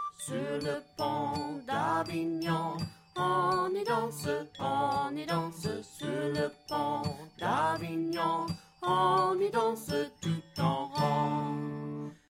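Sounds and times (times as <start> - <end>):
person singing a French children's song: 0.1 - 12.2.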